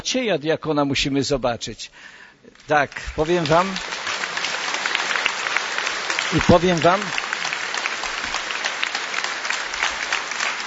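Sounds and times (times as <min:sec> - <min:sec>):
speech: 0:00.0 - 0:04.0, 0:06.3 - 0:07.2
audience clapping: 0:02.6 - 0:10.6.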